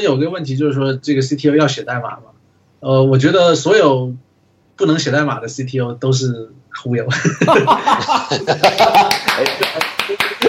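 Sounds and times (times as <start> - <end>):
speech: 0.0 - 4.2, 4.8 - 10.4
laughter: 7.1 - 10.4
applause: 8.6 - 10.4.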